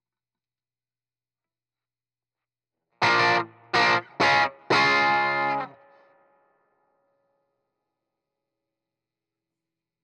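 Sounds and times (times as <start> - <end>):
heavy guitar: 3.0 - 6.0.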